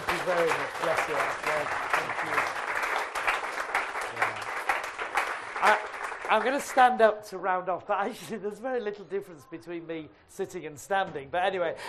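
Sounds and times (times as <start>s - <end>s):
audience applause: 0.0s - 6.9s
speech: 0.3s - 2.5s, 5.6s - 11.8s.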